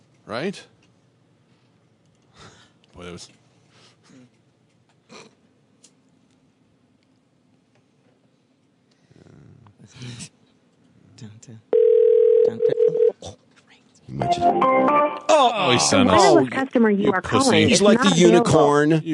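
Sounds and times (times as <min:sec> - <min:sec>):
speech: 0:00.3 - 0:00.8, 0:03.0 - 0:03.4, 0:11.2 - 0:11.7, 0:14.1 - 0:19.1
telephone dial tone after a disconnected call: 0:11.8 - 0:13.1.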